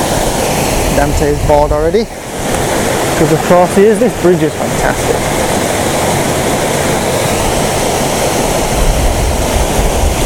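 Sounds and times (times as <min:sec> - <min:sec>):
waterfall: 0:00.0 - 0:10.2
speech: 0:01.0 - 0:02.4, 0:03.2 - 0:05.4.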